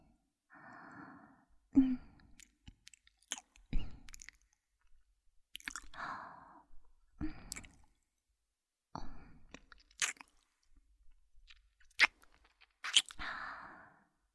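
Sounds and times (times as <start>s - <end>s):
ASMR earlobe nibbling and sucking mouth sounds: 2.4s - 4.6s, 5.5s - 6.0s, 9.5s - 10.6s, 11.4s - 13.2s.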